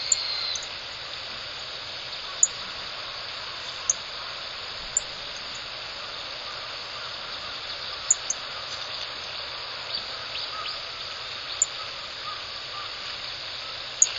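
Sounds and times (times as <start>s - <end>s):
Rustic bunting calls before leaving the roost in early morning: 0.0s - 14.1s.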